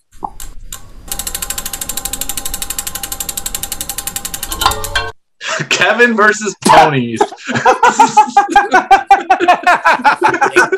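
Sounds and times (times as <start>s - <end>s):
prize wheel spinning and clicking: 1.1s - 5.2s
laughter: 5.4s - 6.0s, 6.9s - 10.7s
speech: 5.6s - 10.7s.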